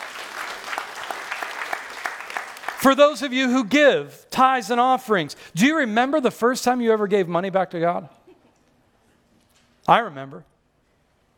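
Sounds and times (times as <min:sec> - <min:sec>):
church audience applauding: 0:00.0 - 0:03.1
speech: 0:02.8 - 0:08.2, 0:09.9 - 0:10.5.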